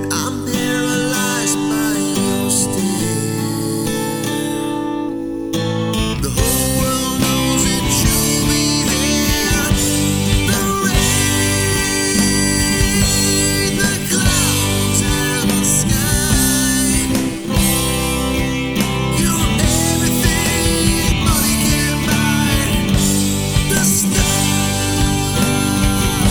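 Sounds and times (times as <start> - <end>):
ambient harmony karaoke music: 0.0 - 26.2.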